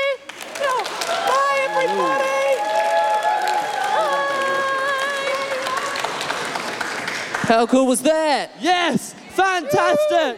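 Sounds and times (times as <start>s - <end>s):
audience applause at the end of a show: 0.3s - 7.6s
speech: 7.5s - 10.3s.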